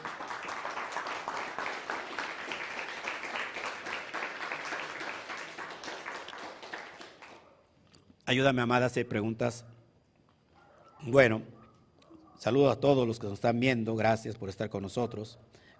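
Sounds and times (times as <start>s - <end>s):
applause: 0.0s - 7.5s
speech: 8.3s - 9.7s, 11.1s - 11.6s, 12.4s - 15.7s.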